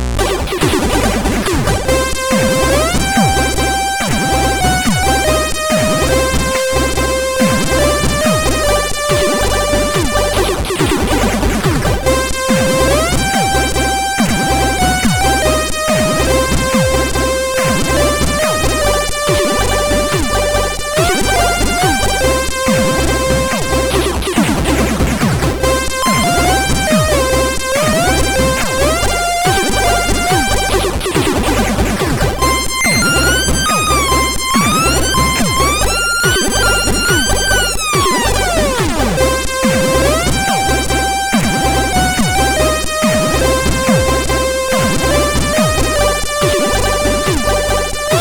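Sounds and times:
SID CSG8580R5 chiptune intro music: 0:00.2 - 0:48.1.

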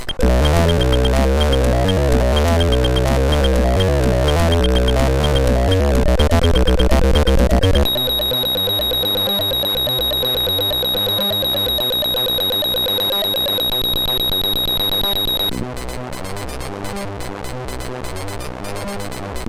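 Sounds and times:
techno music on a MOS6581R2 sound chip: 0:00.2 - 0:15.5.

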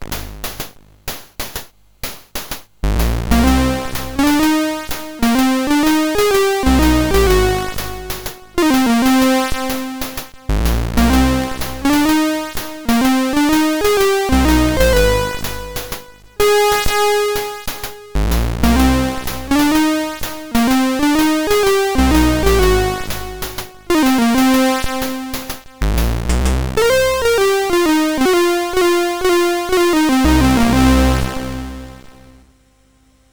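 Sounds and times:
chiptune theme on MOS6581R3: 0:03.0 - 0:32.4.

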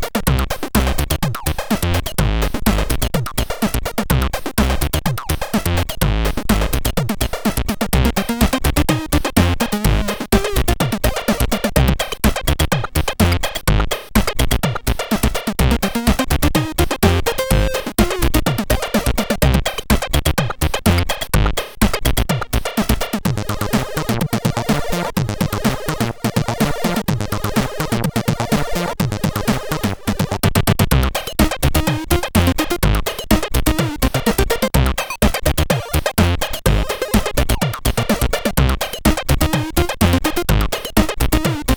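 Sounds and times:
SID CSG8580 chip music: 0:00.3 - 0:41.7.

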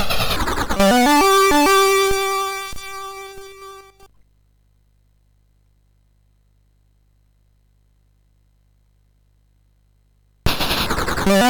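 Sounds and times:
SID MOS6581R2 chiptune game music: 0:00.0 - 0:04.1, 0:10.6 - 0:11.4.

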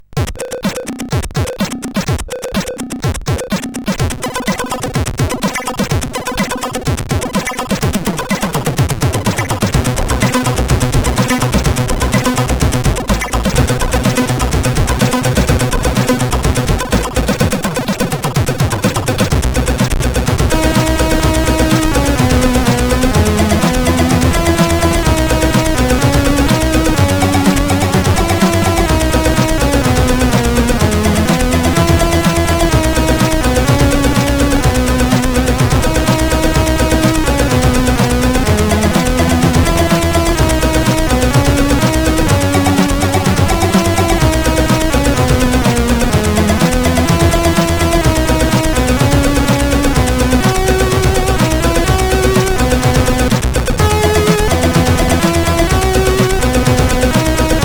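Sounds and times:
SID CSG8580 chip music: 0:00.0 - 0:57.6.

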